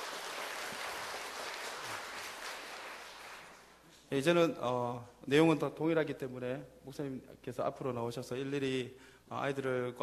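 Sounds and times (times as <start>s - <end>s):
group applauding: 0.0s - 3.9s
speech: 4.1s - 10.0s.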